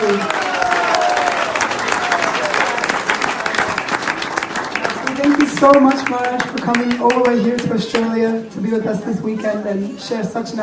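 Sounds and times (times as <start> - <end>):
audience applause: 0.0 - 7.6
speech: 5.6 - 10.6.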